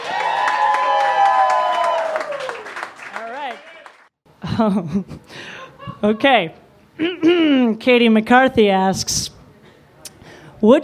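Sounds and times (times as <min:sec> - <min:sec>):
audience applause: 0:00.0 - 0:04.1
speech: 0:04.6 - 0:05.4, 0:06.0 - 0:09.1, 0:10.6 - 0:10.8.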